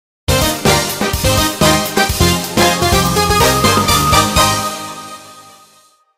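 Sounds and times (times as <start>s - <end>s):
champion jingle: 1.3s - 5.9s.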